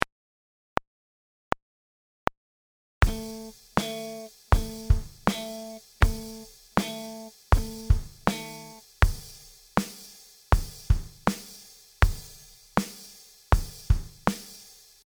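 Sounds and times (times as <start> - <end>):
groove music: 3.0 - 14.8.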